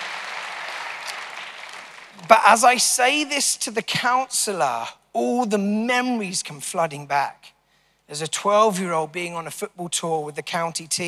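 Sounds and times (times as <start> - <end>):
audience applause: 0.0 - 2.4
speech: 2.2 - 11.0.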